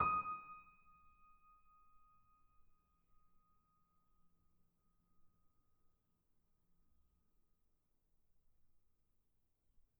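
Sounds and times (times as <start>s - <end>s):
bitKlavierGrand piano note D#6 binaural: 0.0s - 0.4s.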